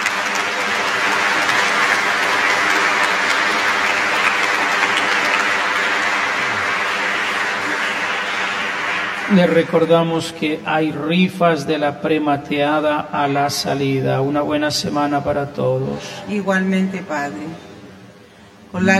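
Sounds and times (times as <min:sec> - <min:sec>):
audience applause: 0:00.0 - 0:10.4
speech: 0:09.3 - 0:17.7, 0:18.7 - 0:18.9.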